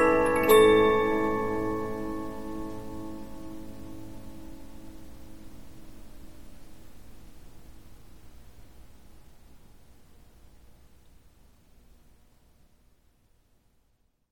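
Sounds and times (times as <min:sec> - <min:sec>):
Polyphon 15-inch disc music box playing: 0:00.0 - 0:03.5.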